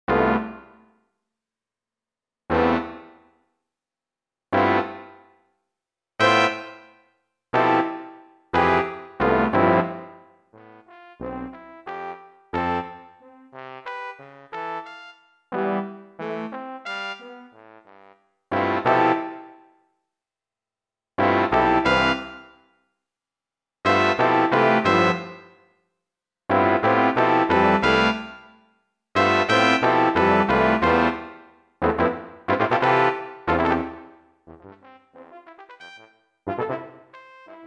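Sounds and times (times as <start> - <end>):
brass instruments: 0.1 - 0.8, 2.5 - 3.1, 4.6 - 5.2, 6.2 - 6.8, 7.6 - 19.6, 21.2 - 22.5, 23.9 - 25.5, 26.5 - 28.5, 29.2 - 37.6.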